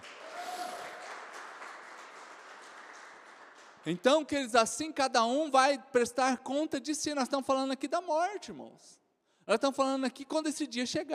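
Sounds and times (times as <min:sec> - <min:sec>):
audience applauding: 0:00.0 - 0:04.0
speech: 0:03.8 - 0:11.1.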